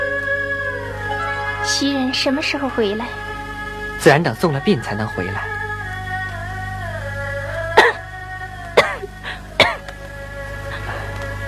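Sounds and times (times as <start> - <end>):
soft music: 0.0 - 11.4
speech: 1.6 - 3.3, 4.0 - 5.6
person with a lingering cough coughing: 7.8 - 8.0, 8.8 - 9.8.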